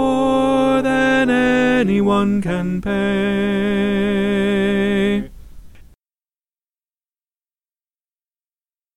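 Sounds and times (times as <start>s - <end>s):
tenor singing: 0.0s - 5.4s.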